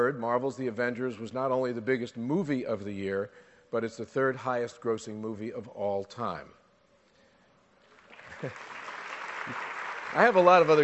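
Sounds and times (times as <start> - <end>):
speech: 0.0 - 6.6, 8.4 - 8.7, 9.5 - 10.8
audience applause: 8.0 - 10.8.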